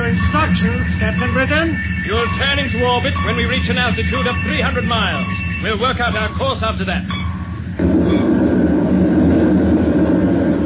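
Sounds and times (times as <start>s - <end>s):
speech: 0.6s - 7.2s
rocket ship lifting off, radio drama sound effect: 7.8s - 10.6s.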